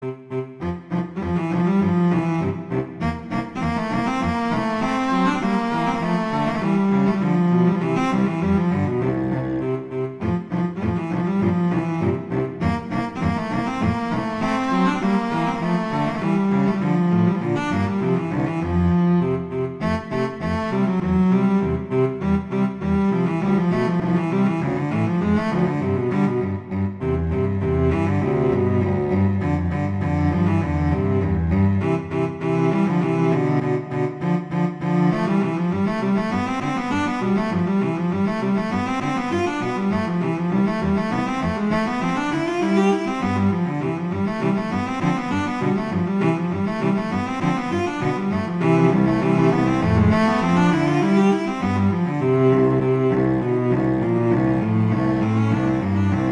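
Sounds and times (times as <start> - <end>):
viola duet: 0.0 - 56.3.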